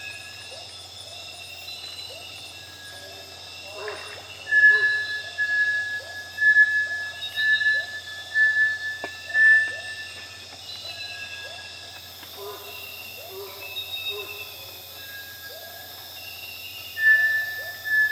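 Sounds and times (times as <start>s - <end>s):
Bartlett's tinamou whistling: 4.5s - 10.2s, 17.0s - 18.0s.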